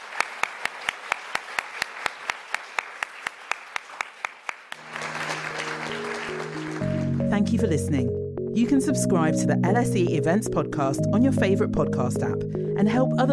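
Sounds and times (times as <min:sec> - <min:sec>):
audience applause: 0:00.0 - 0:07.2
sustained low musical tones: 0:04.8 - 0:13.3
speech: 0:07.4 - 0:13.3.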